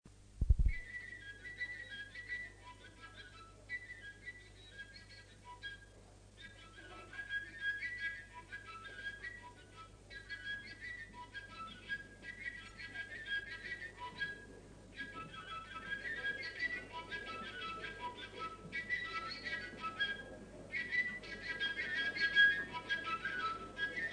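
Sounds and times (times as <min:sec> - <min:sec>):
tilinca playing a game song: 0:00.7 - 0:24.1.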